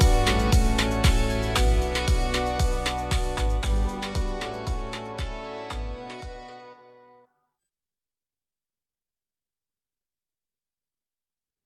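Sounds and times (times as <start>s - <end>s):
instrumental music: 0.0s - 7.3s.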